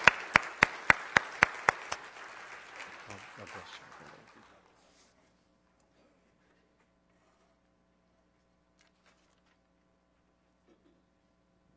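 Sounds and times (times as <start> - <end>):
audience clapping hands: 0.0 - 5.0.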